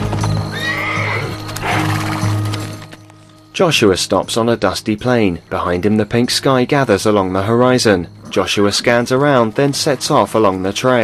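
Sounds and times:
horse whinnying: 0.0s - 2.9s
hooves of horses ridden by rangers across rocky landscape: 0.0s - 11.0s
speech: 3.6s - 11.0s.

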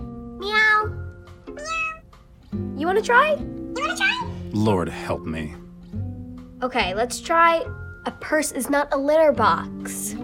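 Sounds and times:
cat meows from a talking cat app on a tablet computer: 0.4s - 2.1s
speech: 2.8s - 3.5s, 4.5s - 5.6s, 6.6s - 10.2s.

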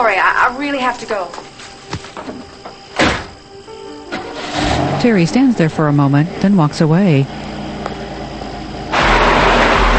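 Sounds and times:
speech: 0.0s - 1.5s, 5.0s - 7.5s
car engine roaring as a woman drives off at night: 4.2s - 9.9s.

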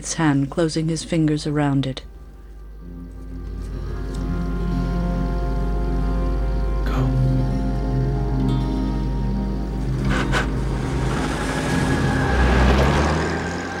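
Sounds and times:
speech: 0.0s - 2.1s
car driving away: 3.4s - 13.7s.

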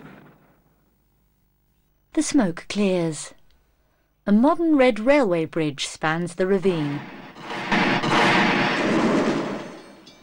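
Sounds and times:
speech: 2.2s - 3.4s, 4.2s - 7.2s
explosions from a train wreck in a ravine in a film: 7.0s - 10.0s.

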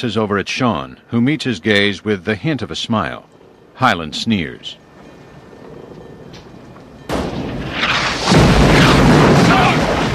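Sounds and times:
speech: 0.0s - 4.8s
police cars exploding into flame: 7.1s - 10.1s.

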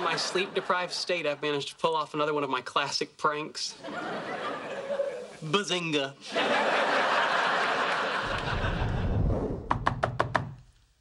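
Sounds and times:
laughter: 0.0s - 1.6s, 3.8s - 5.6s, 6.2s - 9.1s
speech: 0.2s - 4.5s, 5.4s - 6.8s
knocking on a door: 9.7s - 10.6s.

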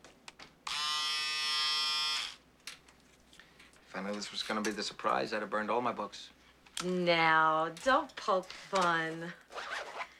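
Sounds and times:
electric razor buzzing: 0.7s - 2.4s
speech: 3.9s - 9.5s.

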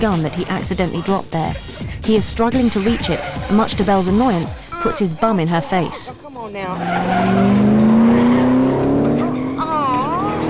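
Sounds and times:
speech: 0.0s - 7.8s
car tires skidding while swerving in a chase: 6.6s - 10.4s
loud sustained car engine tone climbing in pitch: 6.8s - 10.4s.

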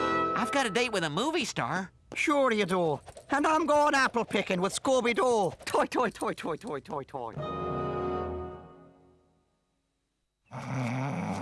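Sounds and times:
speech: 0.4s - 7.6s, 10.5s - 11.2s
man snoring in his sleep: 10.5s - 11.4s.

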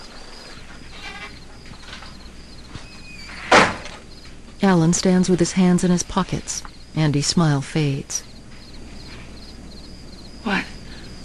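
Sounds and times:
office door being opened: 2.8s - 4.0s
speech: 4.6s - 8.3s.

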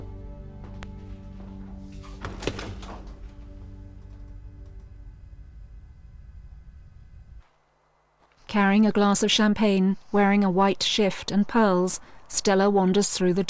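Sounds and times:
low electrical hum: 0.0s - 13.4s
refrigerator door opening: 0.6s - 4.9s
speech: 8.5s - 13.4s.

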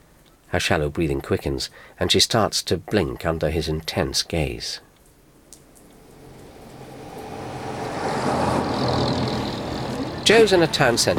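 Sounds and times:
speech: 0.5s - 4.9s, 10.3s - 11.1s
buses passing on a town street: 5.8s - 11.1s.

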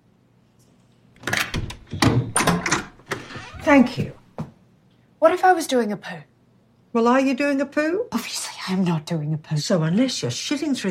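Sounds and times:
door opening: 1.2s - 4.2s
speech: 3.7s - 4.2s, 5.2s - 6.3s, 6.9s - 10.8s.

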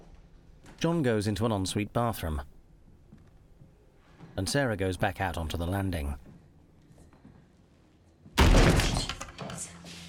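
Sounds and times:
speech: 0.8s - 2.5s, 4.4s - 6.3s
bathroom door bursting open and striking a person: 8.4s - 9.5s.

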